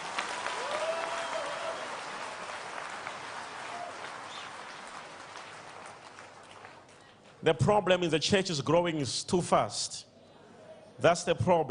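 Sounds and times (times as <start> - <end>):
audience clapping hands: 0.0 - 7.4
speech: 7.4 - 10.1, 11.0 - 11.6.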